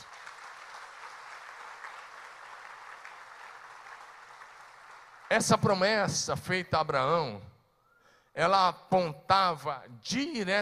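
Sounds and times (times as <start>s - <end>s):
audience applause: 0.0s - 5.7s
speech: 5.3s - 7.5s, 8.4s - 10.5s.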